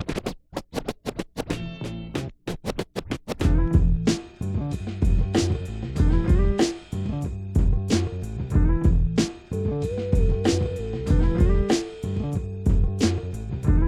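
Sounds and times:
94 BPM hip hop beat: 0:03.4 - 0:13.8.

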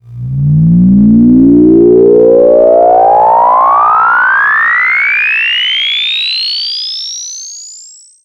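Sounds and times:
modulated rising sound effect: 0:00.0 - 0:05.7.

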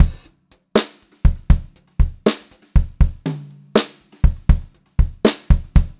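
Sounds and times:
brushed drum loops: 0:00.0 - 0:05.9.

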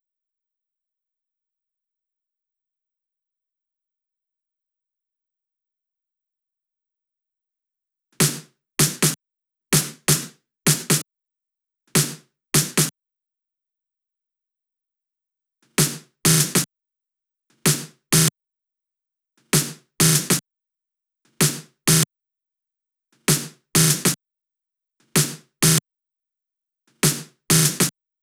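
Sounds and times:
snare drum loop at 128 BPM: 0:08.2 - 0:09.2, 0:09.8 - 0:11.0, 0:12.0 - 0:12.9, 0:15.8 - 0:16.7, 0:17.7 - 0:18.3, 0:19.6 - 0:20.4, 0:21.4 - 0:22.0, 0:23.3 - 0:24.2, 0:25.2 - 0:25.8, 0:27.0 - 0:27.9.

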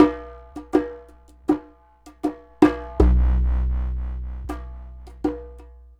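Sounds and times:
Thai long drum rhythm: 0:02.7 - 0:05.5.

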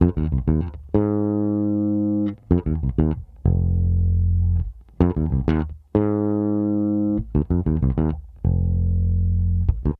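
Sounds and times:
70s analog funk bass line: 0:00.0 - 0:09.9.

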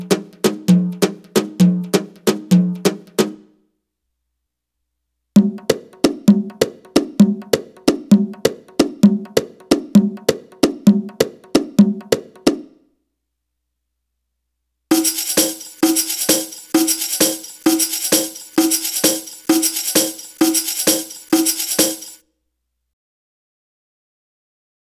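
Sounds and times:
Arabic rhythm percussion: 0:00.0 - 0:03.5, 0:05.4 - 0:12.6, 0:14.9 - 0:22.2.

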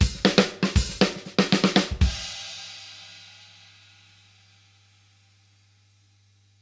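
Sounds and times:
drum fills at 120 BPM: 0:00.0 - 0:03.0.

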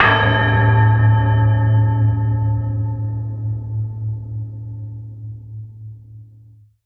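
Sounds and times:
Mirage bell sound: 0:00.0 - 0:03.2.

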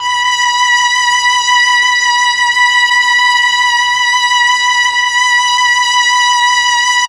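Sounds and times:
Mellotron M400 strings: 0:00.0 - 0:07.0.

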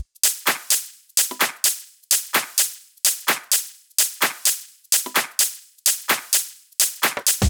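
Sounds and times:
drum loops: 0:00.0 - 0:07.4.

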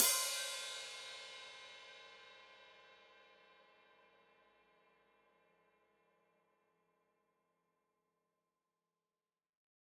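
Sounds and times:
open hi-hat played with foot: 0:00.0 - 0:01.8.

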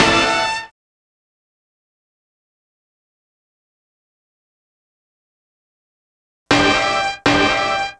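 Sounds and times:
horns stab: 0:00.0 - 0:00.7, 0:06.5 - 0:07.9.

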